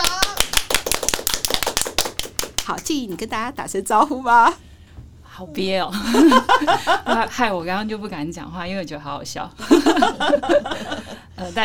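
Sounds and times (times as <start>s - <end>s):
crowd applause: 0.0s - 2.6s
speech: 2.7s - 4.7s, 5.4s - 11.6s
laughter: 5.9s - 7.3s, 9.6s - 11.3s.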